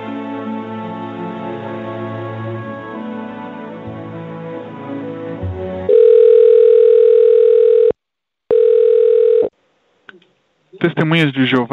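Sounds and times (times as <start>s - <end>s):
telephone tone during call transfer: 5.9s - 7.9s, 8.5s - 9.5s
speech: 11.0s - 11.7s.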